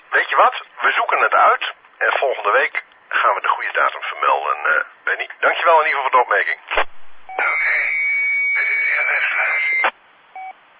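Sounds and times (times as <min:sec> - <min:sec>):
speech: 0:00.3 - 0:07.8
stray beep on amateur radio transmission: 0:07.3 - 0:10.6.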